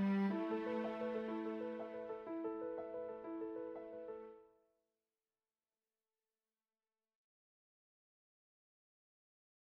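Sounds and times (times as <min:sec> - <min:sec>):
piano trio with flute and cello: 0:00.0 - 0:04.4.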